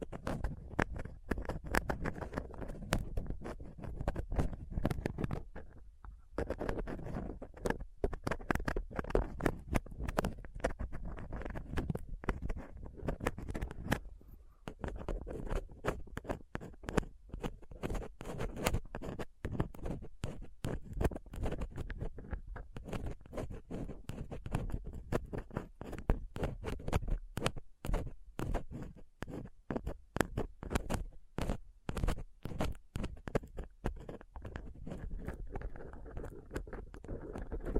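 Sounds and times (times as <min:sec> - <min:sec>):
dental pick, tweezers and cotton swab scraping a microphone grille: 0:00.0 - 0:37.7.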